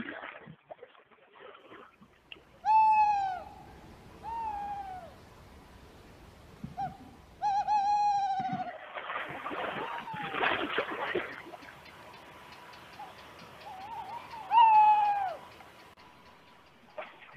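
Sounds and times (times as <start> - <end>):
tawny owl calling: 2.5 - 5.4, 6.6 - 17.3.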